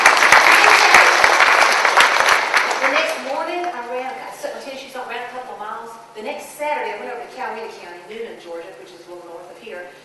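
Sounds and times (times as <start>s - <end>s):
audience applause: 0.0s - 3.4s
speech: 7.6s - 10.0s.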